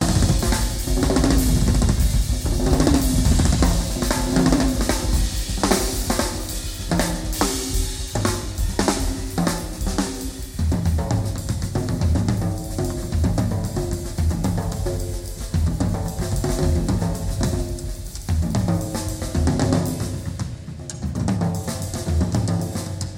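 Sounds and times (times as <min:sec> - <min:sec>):
drums: 0:00.0 - 0:23.1.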